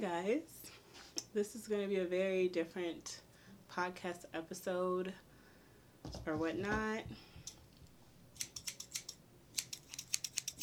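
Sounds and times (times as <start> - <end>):
speech: 0.0 - 5.3, 6.0 - 7.3
scissors snipping: 8.4 - 10.6.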